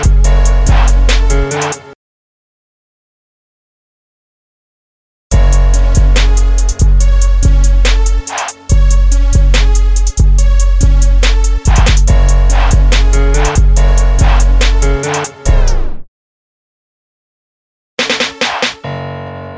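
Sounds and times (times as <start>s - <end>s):
instrumental music at 71 BPM in D flat minor: 0.0s - 1.9s, 5.3s - 15.5s.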